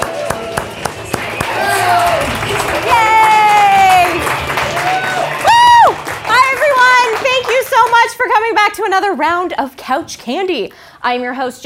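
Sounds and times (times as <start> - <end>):
drawn-out high shouted cheers: 0.0 - 7.1
audience clapping: 0.0 - 8.5
speech: 8.9 - 11.6.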